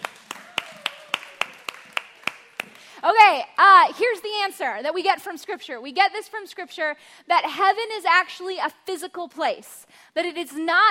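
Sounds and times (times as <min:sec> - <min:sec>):
group clapping during a Bible teaching session: 0:00.0 - 0:03.0
speech: 0:03.0 - 0:10.8.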